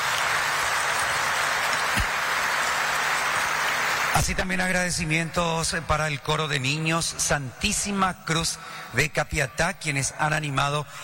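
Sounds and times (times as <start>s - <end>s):
audience applause: 0.0s - 4.8s
speech: 4.2s - 11.0s.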